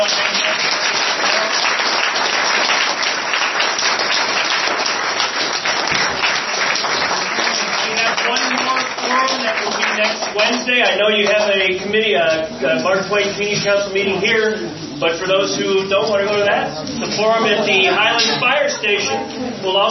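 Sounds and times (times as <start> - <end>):
audience applause: 0.0 - 11.4
speech: 10.5 - 19.8.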